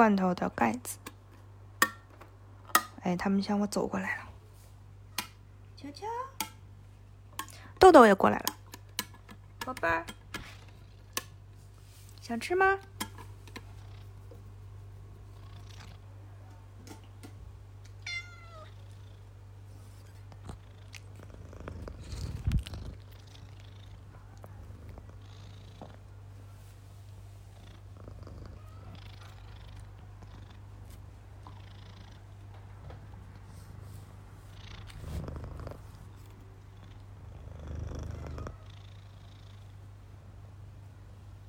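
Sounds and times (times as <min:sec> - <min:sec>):
speech: 0:00.0 - 0:01.1, 0:03.0 - 0:04.2, 0:05.8 - 0:06.3, 0:07.8 - 0:08.6, 0:09.6 - 0:10.2, 0:12.3 - 0:12.9
cats purring: 0:10.3 - 0:11.9, 0:12.6 - 0:40.9.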